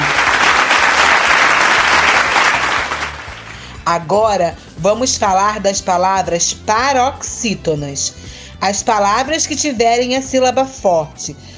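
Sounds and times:
applause: 0.0s - 3.8s
speech: 3.9s - 11.5s.

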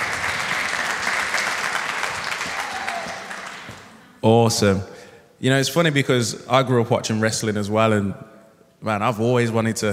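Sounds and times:
audience applause: 0.0s - 4.1s
speech: 4.2s - 9.9s.

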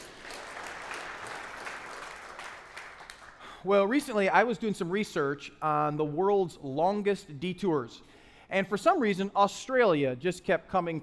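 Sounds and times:
audience round of applause: 0.0s - 3.5s
speech: 3.6s - 11.0s.

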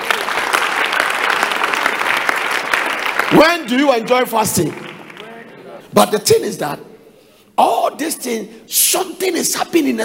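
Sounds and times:
audience clapping: 0.0s - 5.6s
speech: 3.4s - 4.9s, 6.0s - 6.9s, 7.6s - 10.0s.

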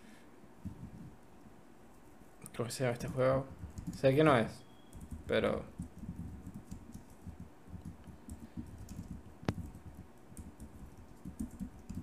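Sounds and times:
speech: 2.6s - 4.6s, 5.3s - 5.9s
message typed on a computer keyboard: 2.9s - 4.3s, 4.9s - 12.0s.

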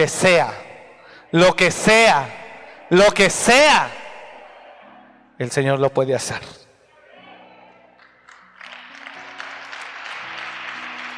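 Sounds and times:
speech: 0.0s - 0.6s, 1.3s - 4.0s, 5.4s - 6.6s
audience applause: 8.0s - 11.1s.

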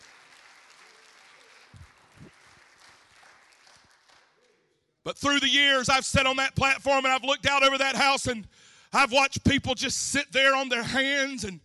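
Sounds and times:
audience clapping hands: 0.0s - 4.9s
speech: 5.1s - 11.6s.

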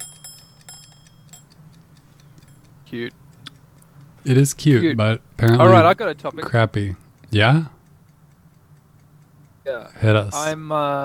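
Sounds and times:
small metallic dings from a shaken cow-shaped gadget: 0.0s - 3.6s
low steady hum: 0.0s - 11.0s
speech: 2.9s - 3.2s, 4.2s - 7.8s, 9.7s - 11.0s.

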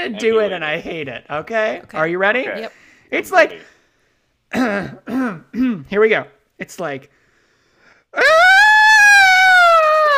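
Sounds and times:
speech: 0.0s - 3.8s, 4.5s - 7.2s, 8.1s - 8.4s
voice screaming imitating a shrieking ringtone: 8.2s - 10.1s.

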